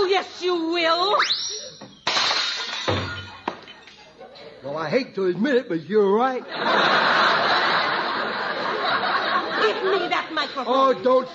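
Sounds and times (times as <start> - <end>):
speech: 0.2 - 1.8, 4.6 - 7.5, 9.6 - 11.3
tinkling glassy clatter: 1.4 - 4.0
dishes smashing as a tablecloth is pulled away: 1.9 - 4.0
laughter: 6.4 - 11.3.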